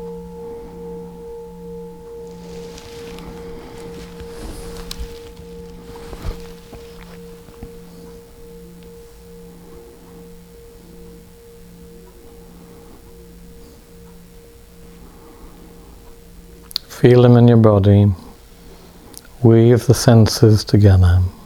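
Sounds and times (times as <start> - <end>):
bell resonating: 0.0 - 19.0
soft rustling: 2.1 - 16.8
speech: 17.0 - 18.2, 19.4 - 21.4.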